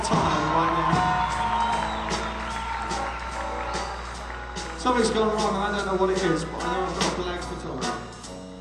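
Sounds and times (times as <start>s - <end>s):
audience applause: 0.0s - 6.1s
speech: 4.8s - 7.9s.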